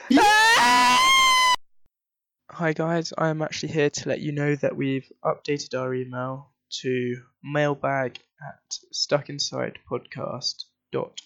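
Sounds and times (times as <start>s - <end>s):
group screaming: 0.0s - 1.6s
speech: 2.6s - 11.2s.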